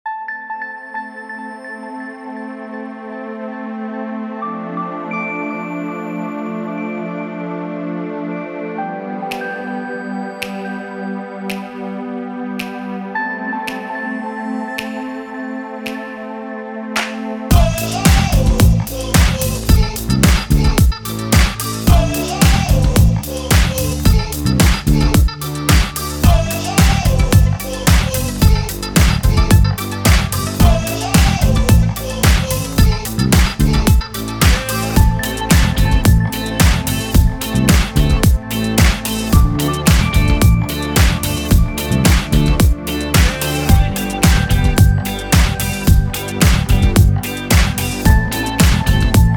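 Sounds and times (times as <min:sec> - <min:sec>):
groove music: 0:17.0 - 0:49.3.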